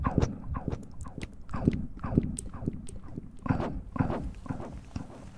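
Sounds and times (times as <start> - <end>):
wet mouth clicks and pops: 0.0 - 5.2.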